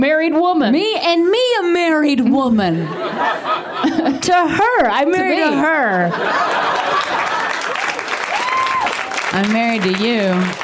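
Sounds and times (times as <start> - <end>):
speech: 0.0 - 7.2, 9.3 - 10.6
laughter: 2.6 - 8.6
audience clapping: 6.3 - 10.6.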